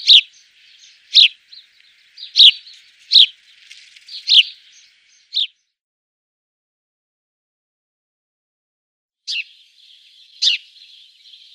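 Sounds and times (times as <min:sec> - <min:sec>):
house sparrow song of bright double-noted chirps: 0:00.0 - 0:05.8, 0:09.3 - 0:11.5.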